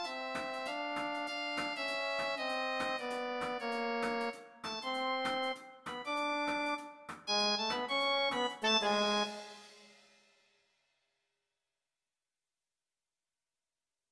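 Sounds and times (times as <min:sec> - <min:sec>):
swing etude: 0:00.0 - 0:09.9.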